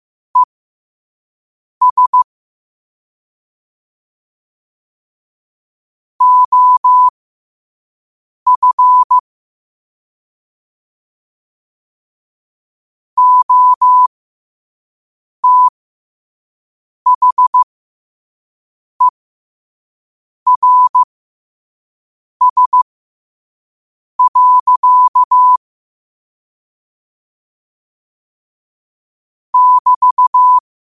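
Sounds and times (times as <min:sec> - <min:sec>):
morse code at 5 wpm: 0:01.8 - 0:02.3, 0:06.2 - 0:07.1, 0:08.5 - 0:09.2, 0:13.2 - 0:14.1, 0:15.4 - 0:15.7, 0:17.1 - 0:17.6, 0:20.5 - 0:21.1, 0:22.4 - 0:22.8, 0:24.2 - 0:25.6, 0:29.6 - 0:30.6.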